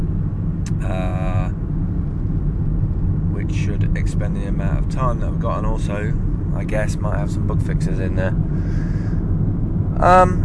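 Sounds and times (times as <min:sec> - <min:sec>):
car driven home, engine and road noise: 0:00.0 - 0:10.4
speech: 0:04.2 - 0:08.9, 0:10.0 - 0:10.4.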